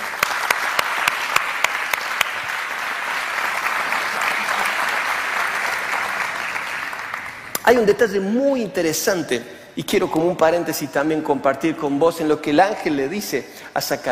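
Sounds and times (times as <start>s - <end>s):
loud crowd applause: 0.0s - 7.6s
speech: 7.7s - 14.1s.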